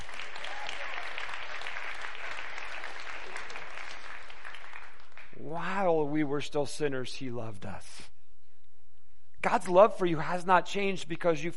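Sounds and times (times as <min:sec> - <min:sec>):
crowd applause: 0:00.0 - 0:05.4
speech: 0:05.6 - 0:08.0, 0:09.4 - 0:11.5.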